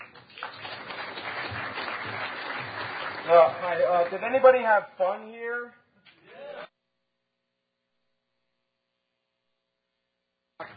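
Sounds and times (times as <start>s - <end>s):
audience applause: 0.0s - 4.4s
speech: 3.3s - 5.8s.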